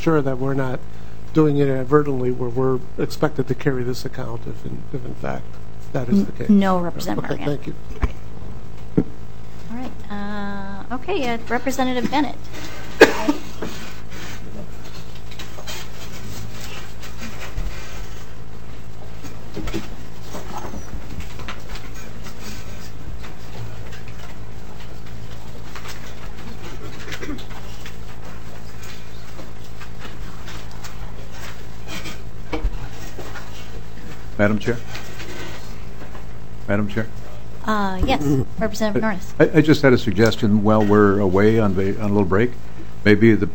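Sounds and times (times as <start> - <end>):
speech: 0.0 - 8.1, 10.9 - 13.4, 34.4 - 34.9, 36.7 - 43.5
squeaky chairs: 20.3 - 21.1.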